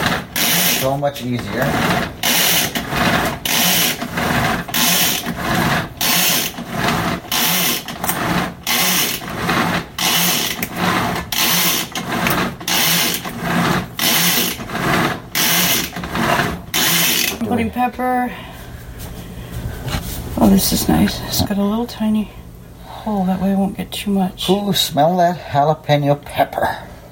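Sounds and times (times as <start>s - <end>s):
electric food chopper motor whirring: 0.0s - 17.5s
speech: 0.8s - 2.6s, 17.8s - 18.5s, 20.5s - 22.4s, 23.0s - 26.9s.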